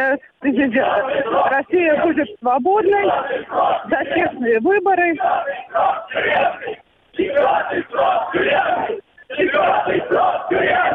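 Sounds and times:
speech: 0.0 - 10.9
protest crowd shouting slogans: 0.4 - 10.9.

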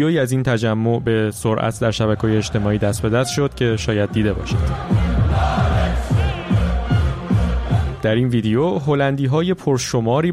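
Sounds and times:
speech: 0.0 - 5.5, 8.0 - 10.3
crowd of about 30,000 Dutch fans roaring in a Hamburg street: 1.8 - 3.2, 3.9 - 8.0
thumping bass beat from music: 2.2 - 8.1.

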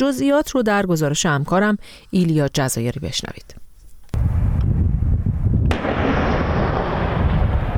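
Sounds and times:
speech: 0.0 - 3.6
Israeli army artillery shelling southern Lebanon: 4.2 - 7.7.

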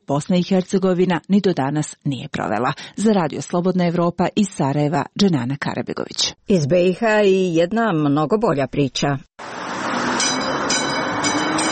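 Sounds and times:
speech: 0.1 - 9.6
replica of the first electric tram from 1895 on Sarajevo rails: 9.4 - 11.7.

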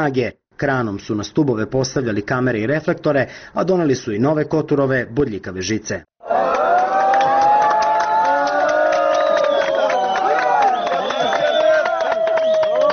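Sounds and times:
speech: 0.0 - 6.4
crowd of refugees shouting and cheering at Hungarian soldiers: 6.2 - 12.9.

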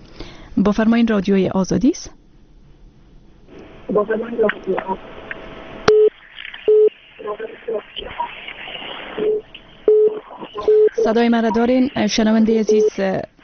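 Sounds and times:
speech: 0.6 - 2.2, 3.9 - 5.1, 7.3 - 8.4, 11.1 - 13.3
telephone busy tone after call cut: 6.7 - 7.8, 9.2 - 11.6.

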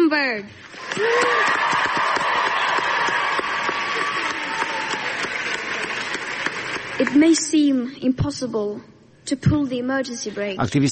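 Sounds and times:
speech: 0.1 - 1.7, 7.0 - 10.9
students applauding: 0.7 - 7.6
cheers and whistles: 0.8 - 6.4.

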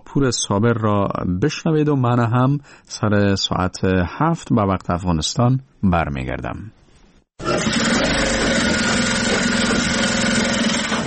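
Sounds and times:
speech: 0.1 - 6.8
electric sewing machines running in workshop: 7.4 - 11.0.

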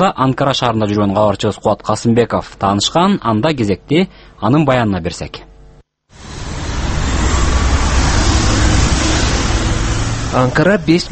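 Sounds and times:
speech: 0.0 - 5.5, 10.3 - 11.1
street traffic in Ankara, Turkey: 6.2 - 11.1.

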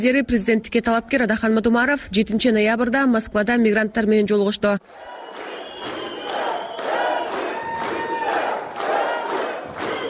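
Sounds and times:
speech: 0.0 - 6.0
supporters shouting and applauding to greet a politician: 4.8 - 10.0.

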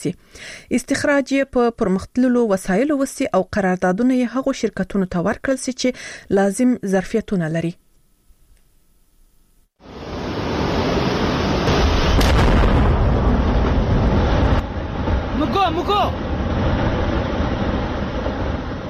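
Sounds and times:
speech: 0.0 - 7.8, 15.7 - 16.3
gunpowder blast in a semi-precious stone mine in Nuristan: 10.0 - 18.8.

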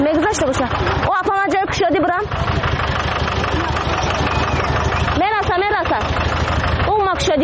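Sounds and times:
car engine running: 0.0 - 7.4
speech: 0.3 - 1.4.

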